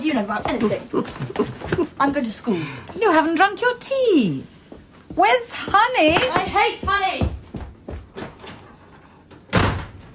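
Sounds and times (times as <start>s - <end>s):
speech: 0.1s - 4.6s, 5.2s - 7.3s
door slamming shut: 9.5s - 10.1s.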